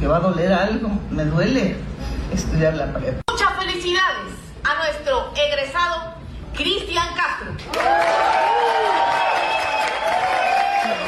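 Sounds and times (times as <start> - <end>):
speech: 0.0 - 3.2, 3.8 - 8.8
applause: 7.6 - 11.0.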